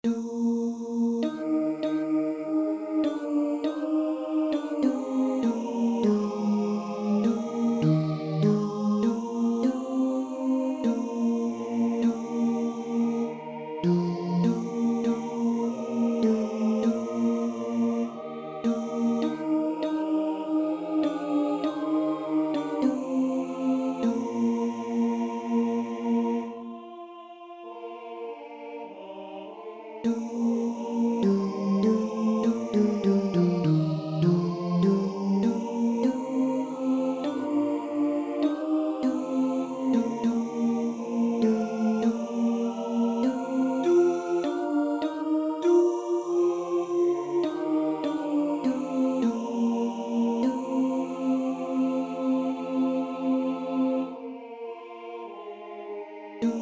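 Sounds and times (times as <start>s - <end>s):
tenor singing: 0.0s - 56.5s.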